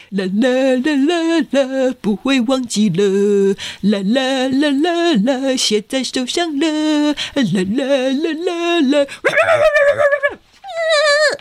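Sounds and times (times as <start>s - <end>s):
speech: 0.0s - 11.4s
dog whimpering: 9.3s - 11.4s.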